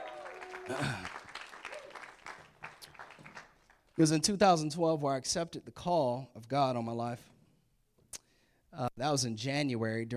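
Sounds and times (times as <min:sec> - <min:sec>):
hand clapping applause for production team: 0:00.0 - 0:04.0
speech: 0:00.7 - 0:01.2, 0:04.0 - 0:07.3, 0:08.8 - 0:10.1.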